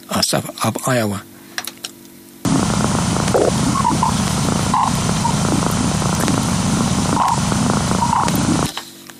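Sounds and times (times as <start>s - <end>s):
speech: 0.3s - 1.3s
time-compressed space radio emissions, hissing crackling static: 2.5s - 8.7s.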